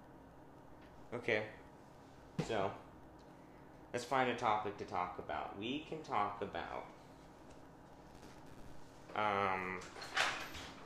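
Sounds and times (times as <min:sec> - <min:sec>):
speech: 0:01.1 - 0:01.6, 0:02.4 - 0:02.8, 0:03.9 - 0:07.0, 0:09.2 - 0:10.2
garage door opening: 0:09.8 - 0:10.8.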